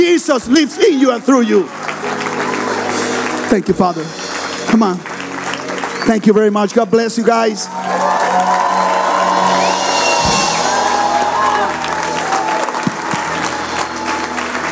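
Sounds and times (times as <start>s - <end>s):
speech: 0.0s - 1.9s, 3.5s - 5.1s, 6.0s - 8.6s
church audience applauding: 0.0s - 14.7s.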